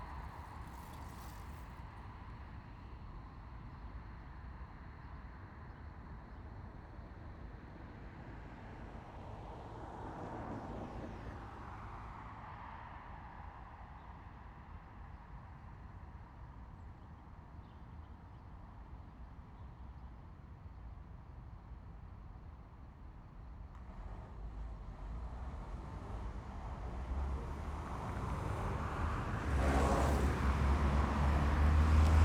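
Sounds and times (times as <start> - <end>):
city street traffic with cars: 0.0 - 1.8, 23.8 - 32.2.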